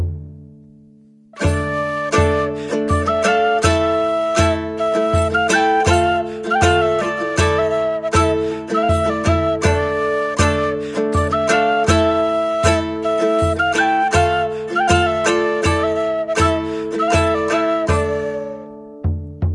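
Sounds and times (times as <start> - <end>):
kithara: 1.4 - 19.2
flute: 1.4 - 19.3
drum: 19.0 - 19.5.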